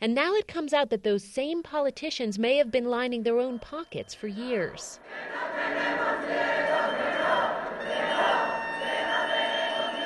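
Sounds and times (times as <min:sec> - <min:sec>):
speech: 0:00.0 - 0:06.7
protesters shouting outside party headquarters: 0:05.1 - 0:10.0.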